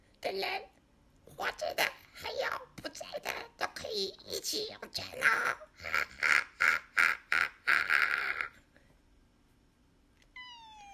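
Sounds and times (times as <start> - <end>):
speech: 0.3 - 8.2
kitten meowing: 10.3 - 10.9.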